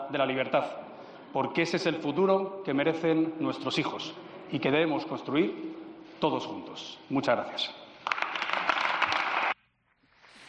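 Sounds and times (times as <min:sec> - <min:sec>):
speech: 0:00.1 - 0:07.8
crowd applause after a political speech: 0:08.0 - 0:09.6.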